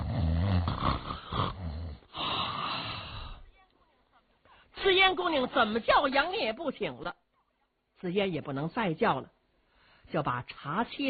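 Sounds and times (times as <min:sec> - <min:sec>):
storyteller imitating the snoring of a drunken man: 0:00.0 - 0:03.4
speech: 0:05.1 - 0:07.2, 0:08.0 - 0:09.4, 0:10.1 - 0:11.0.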